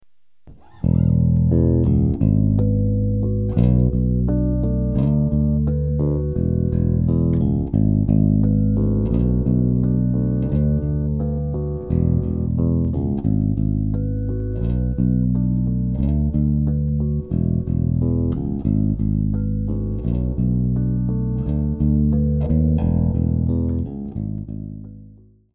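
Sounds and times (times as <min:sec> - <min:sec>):
instrument harmonics: 0:00.5 - 0:25.2.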